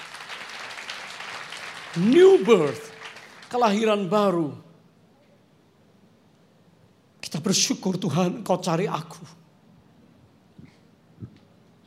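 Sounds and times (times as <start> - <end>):
crowd clapping: 0.0 - 4.2
speech: 2.0 - 2.9, 3.5 - 4.7, 7.5 - 9.4.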